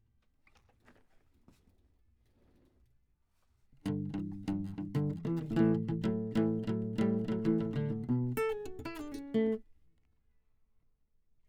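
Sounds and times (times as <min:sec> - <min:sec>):
classical guitar: 0:03.8 - 0:09.6.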